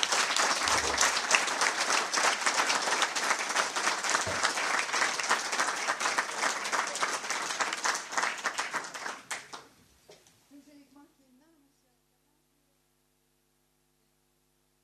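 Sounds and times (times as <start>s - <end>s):
warm applause from audience: 0.0s - 9.7s.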